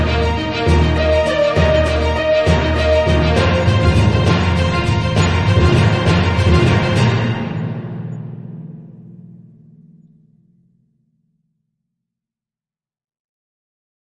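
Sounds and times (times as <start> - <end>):
newsroom news theme music: 0.0 - 10.1.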